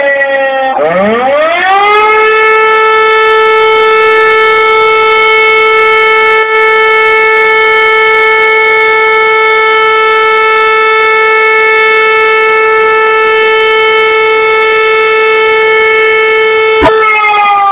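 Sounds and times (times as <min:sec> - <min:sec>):
air raid alarm siren: 0:00.0 - 0:17.7.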